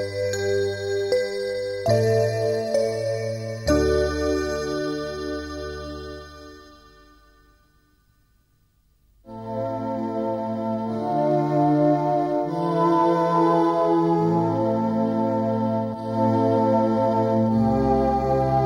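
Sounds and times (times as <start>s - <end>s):
synthesizer: 0.0s - 7.8s, 9.2s - 18.6s.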